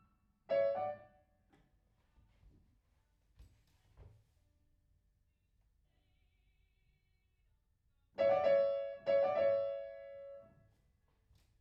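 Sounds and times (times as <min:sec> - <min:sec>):
piano in a room: 0:00.0 - 0:01.2, 0:08.2 - 0:10.6.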